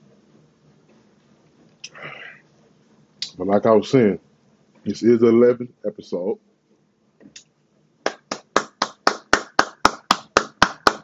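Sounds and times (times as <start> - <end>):
speech: 3.4 - 6.5
hand clapping: 7.4 - 11.0.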